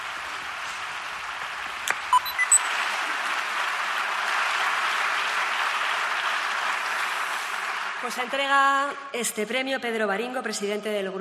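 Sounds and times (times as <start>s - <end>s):
audience applause: 0.0s - 8.5s
electronic beeps: 2.1s - 2.7s
speech: 8.0s - 11.1s.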